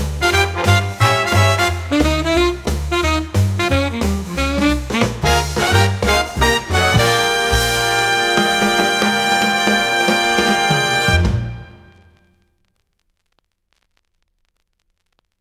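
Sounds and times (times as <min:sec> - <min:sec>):
big band swing at 88 bpm: 0:00.0 - 0:12.1.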